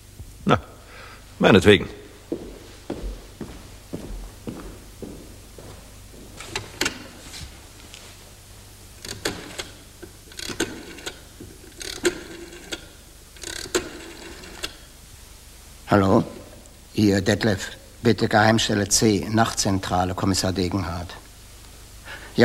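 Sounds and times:
speech: 0.5s - 0.7s, 1.4s - 2.0s, 17.0s - 21.2s
clockwork mechanism ticking: 9.0s - 14.8s
sharp irregular clicks and knocks: 9.0s - 14.8s.

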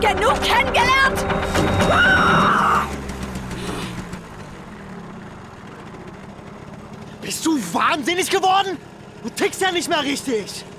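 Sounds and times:
speech: 0.0s - 2.1s, 7.4s - 10.7s
car engine idling: 0.0s - 10.7s
car braking hard: 0.9s - 5.6s.

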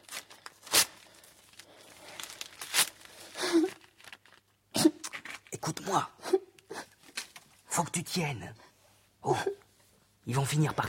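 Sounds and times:
paper notebook being torn up: 0.0s - 1.1s, 2.2s - 4.2s
quiet paper rustling: 0.0s - 4.5s
speech: 5.9s - 6.2s, 7.8s - 8.6s, 9.2s - 9.6s, 10.3s - 10.8s.

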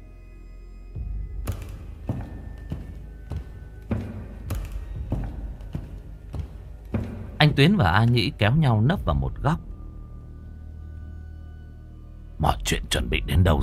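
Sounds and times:
footsteps outside: 1.4s - 8.2s
speech: 7.6s - 9.7s, 12.4s - 13.6s.

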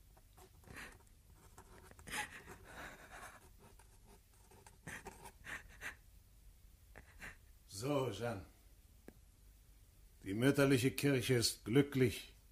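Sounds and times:
pen scratching on paper while signing a document: 0.4s - 5.6s
speech: 7.8s - 8.5s, 10.3s - 12.3s.

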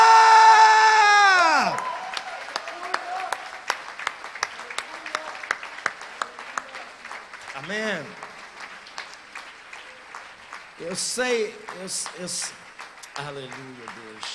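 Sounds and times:
crowd shouting a war and victory cry: 0.0s - 3.6s
scattered applause to the Lord: 0.0s - 14.3s
speech: 10.8s - 12.6s, 13.2s - 14.3s.

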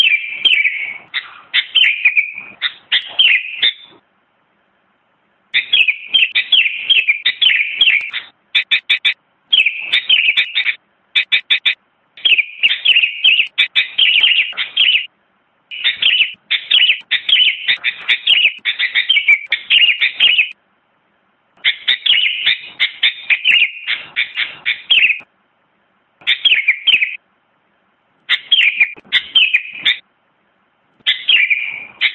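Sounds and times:
sooty-headed bulbul song with chattering warbled notes: 0.0s - 4.0s, 5.5s - 15.1s, 15.7s - 20.6s, 21.6s - 25.3s, 26.2s - 27.2s, 28.2s - 30.0s, 31.0s - 32.1s.

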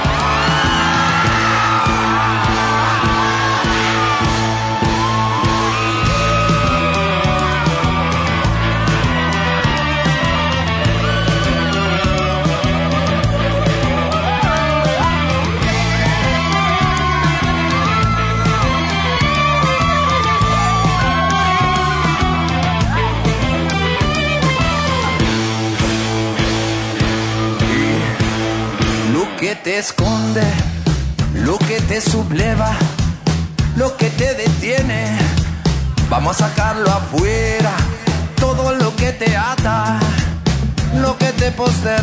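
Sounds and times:
crowd yelling and whooping: 0.0s - 29.8s
live rock song with full band: 0.0s - 42.0s.

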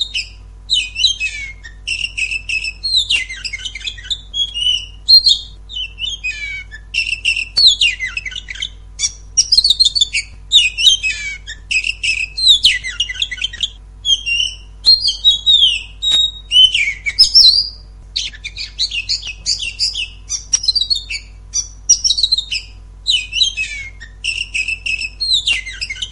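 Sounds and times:
Oriental magpie-robin scratchy song: 0.0s - 26.1s.

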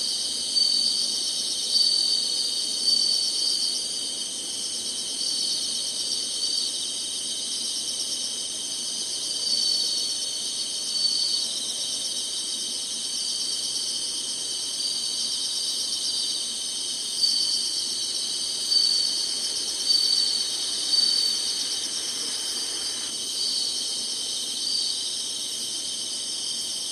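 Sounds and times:
insects trilling: 0.0s - 26.8s.

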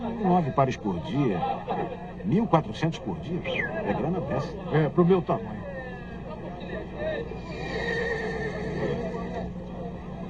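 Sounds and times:
murmur of voices: 0.0s - 10.2s
speech: 0.2s - 5.7s
racehorse neighing at a racetrack: 7.4s - 9.3s.

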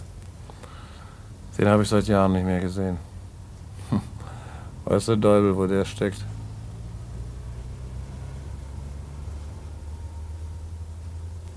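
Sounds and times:
speech: 1.6s - 3.1s, 4.9s - 6.3s
cars starting to drive outside: 3.7s - 11.5s.

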